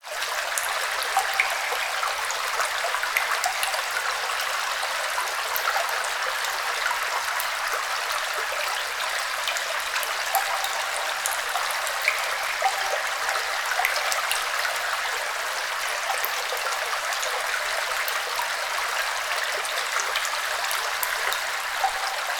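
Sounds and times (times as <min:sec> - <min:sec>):
water flowing in a sewer: 0:00.0 - 0:22.3.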